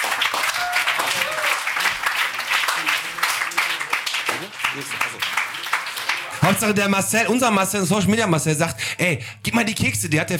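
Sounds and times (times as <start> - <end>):
audience applause: 0.0 - 6.8
speech: 4.8 - 5.4, 6.4 - 10.3.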